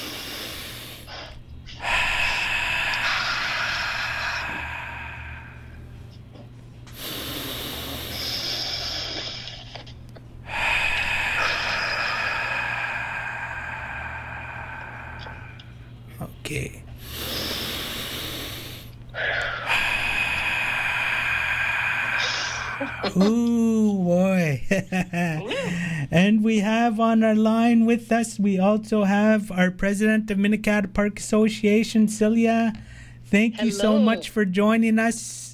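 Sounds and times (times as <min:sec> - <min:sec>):
inhaling through the nose: 0:00.0 - 0:05.8, 0:06.9 - 0:09.8, 0:10.5 - 0:15.7, 0:17.0 - 0:23.1
laughter: 0:02.4 - 0:05.4, 0:23.6 - 0:27.3
speech: 0:27.1 - 0:35.5.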